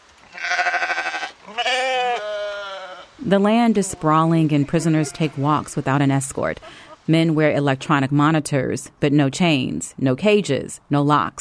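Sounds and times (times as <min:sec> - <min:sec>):
farm sheep or goats bleating: 0:00.2 - 0:05.9
speech: 0:03.2 - 0:11.3.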